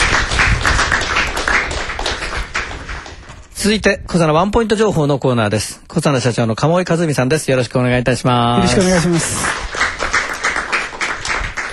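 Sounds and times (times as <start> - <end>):
applause: 0.0 - 3.3, 8.6 - 11.7
speech: 3.6 - 9.7.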